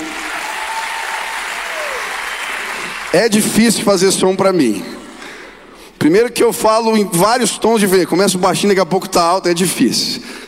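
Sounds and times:
audience applause: 0:00.0 - 0:03.5
speech: 0:03.1 - 0:05.0, 0:06.0 - 0:10.4.

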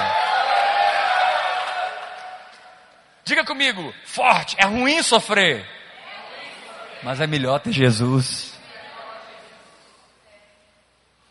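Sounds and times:
audience victory shout with whoops: 0:00.0 - 0:02.5
speech: 0:03.3 - 0:05.8, 0:07.0 - 0:08.6.

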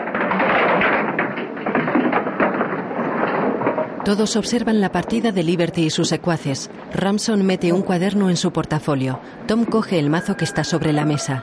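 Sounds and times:
wooden chairs knocked over while walking out: 0:00.0 - 0:05.0
rumbling noise: 0:00.0 - 0:11.1
speech: 0:04.1 - 0:11.4.

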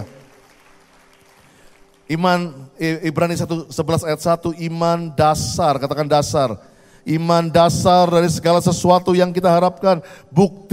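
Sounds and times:
audience applause: 0:00.0 - 0:02.0
speech: 0:02.1 - 0:10.7.

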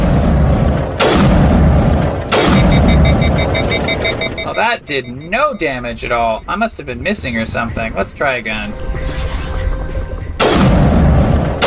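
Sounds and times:
noise: 0:00.6 - 0:10.4
sniper rifle shots in a video game: 0:00.8 - 0:04.6, 0:10.4 - 0:11.6
faint repeating beeps: 0:02.4 - 0:06.7
speech: 0:04.5 - 0:09.3.

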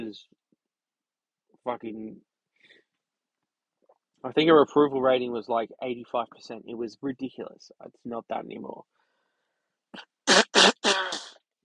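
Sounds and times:
speech: 0:00.1 - 0:00.4, 0:01.6 - 0:02.3, 0:04.2 - 0:09.0, 0:09.9 - 0:10.1
person blowing nose: 0:10.3 - 0:11.4.

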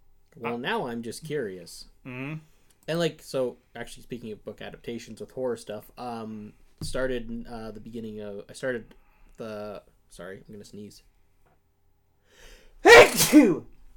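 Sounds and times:
speech: 0:00.4 - 0:11.1, 0:12.8 - 0:13.8
person sneezing: 0:12.8 - 0:13.7.

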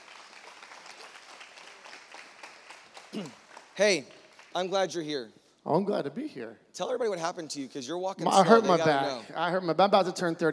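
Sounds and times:
audience applause welcoming a guest on stage: 0:00.0 - 0:05.0
speech: 0:03.1 - 0:10.5.

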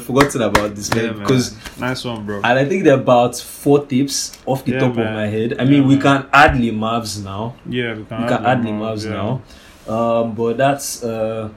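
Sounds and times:
people clapping: 0:00.0 - 0:01.8
speech: 0:00.0 - 0:11.5.

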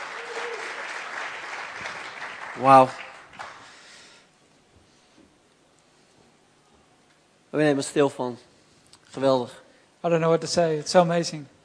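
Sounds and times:
audience applause: 0:00.0 - 0:03.8
speech: 0:02.6 - 0:03.0, 0:07.6 - 0:08.5, 0:09.1 - 0:11.6.

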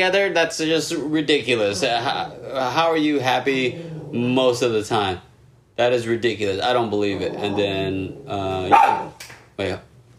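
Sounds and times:
speech: 0:00.0 - 0:09.9
pet dog Abby barking in an apartment: 0:08.7 - 0:09.2.

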